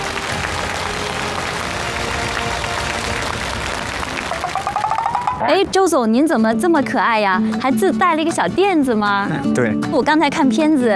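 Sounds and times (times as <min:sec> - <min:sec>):
audience applause welcoming guests: 0:00.0 - 0:05.4
speech: 0:05.5 - 0:10.9.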